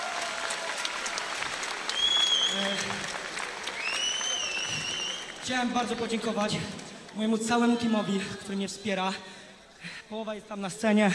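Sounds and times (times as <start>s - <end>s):
large crowd clapping: 0.0s - 7.6s
sharp whistles: 1.9s - 2.8s, 3.8s - 5.4s
speech: 5.5s - 9.4s, 10.1s - 11.1s.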